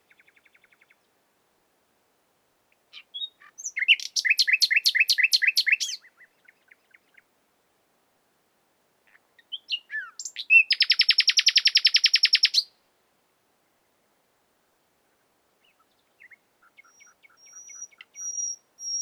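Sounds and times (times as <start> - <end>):
common nightingale Luscinia megarhynchos singing: 0.0 - 1.1, 2.7 - 7.3, 9.1 - 12.8, 15.6 - 18.9.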